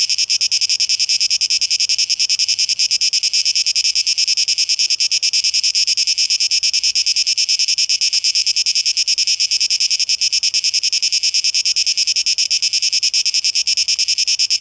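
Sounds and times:
cicadas buzzing: 0.0 - 14.6.

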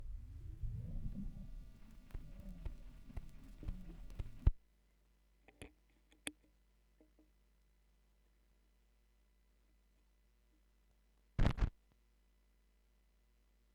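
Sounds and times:
vinyl record noise: 0.2 - 4.6, 11.4 - 11.7.

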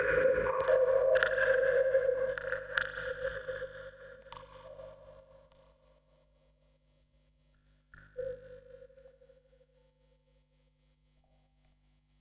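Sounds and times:
vocoder recorded on tape: 0.0 - 3.5.

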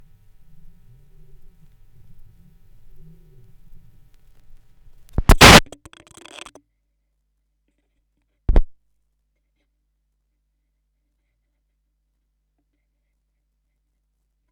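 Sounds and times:
vinyl record noise: 5.2 - 6.6.

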